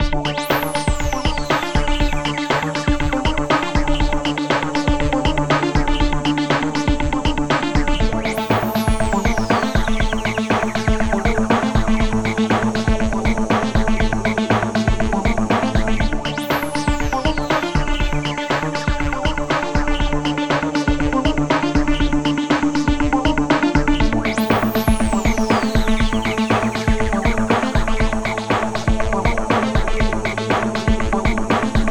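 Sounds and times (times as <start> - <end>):
percussion loop: 0.3 - 31.8.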